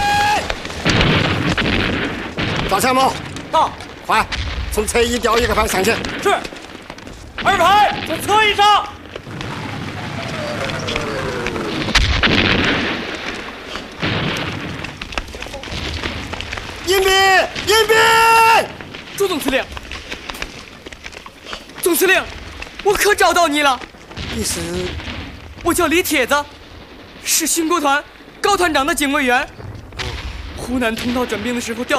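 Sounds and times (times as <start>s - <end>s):
voices shouting over the barrage: 0.0s - 0.7s, 9.5s - 12.0s, 16.9s - 18.8s
artillery bombardment in a war drama battle scene: 0.0s - 31.9s
speech: 2.7s - 6.6s, 7.4s - 9.0s, 16.9s - 19.8s, 21.9s - 25.0s, 25.6s - 26.6s, 27.2s - 29.6s, 30.7s - 31.9s.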